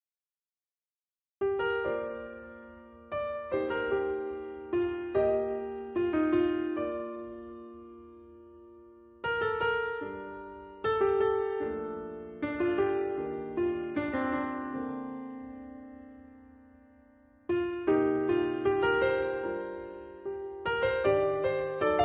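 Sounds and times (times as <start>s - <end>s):
piano: 1.4s - 22.0s.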